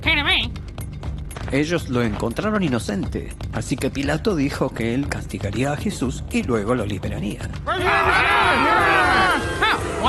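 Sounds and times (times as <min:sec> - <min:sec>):
speech: 0:01.5 - 0:10.0
angry crowd shouting: 0:07.7 - 0:10.0.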